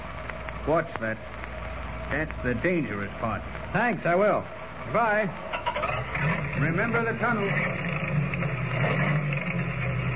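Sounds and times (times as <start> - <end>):
speech: 0.7 - 1.4, 2.1 - 9.1
old car motor chugging: 5.5 - 10.1.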